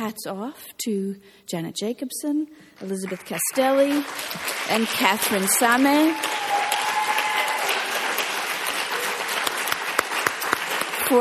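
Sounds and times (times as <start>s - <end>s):
speech: 0.1s - 6.6s
audience applause: 3.1s - 11.1s.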